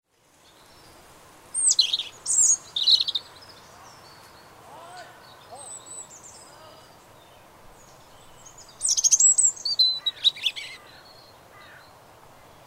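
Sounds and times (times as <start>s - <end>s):
European robin Erithacus rubecula singing: 0.4s - 12.6s.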